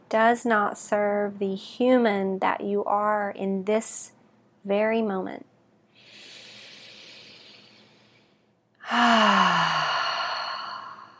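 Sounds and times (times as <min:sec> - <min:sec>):
speech: 0:00.1 - 0:05.5, 0:08.9 - 0:09.8
deep cleansing inhale and exhale during breathing meditation: 0:06.0 - 0:11.1.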